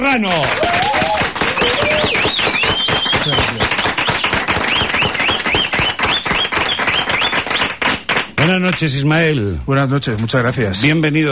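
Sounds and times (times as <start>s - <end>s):
speech: 0.0s - 0.8s, 8.5s - 11.3s
audience applause: 0.0s - 8.8s
scattered cheers: 0.3s - 3.5s.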